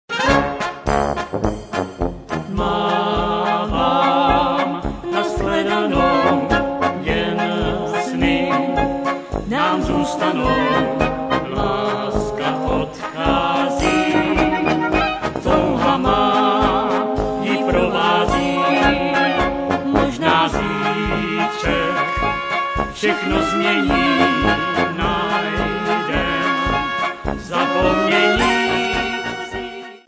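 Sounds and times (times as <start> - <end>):
polka music: 0.1 - 30.0.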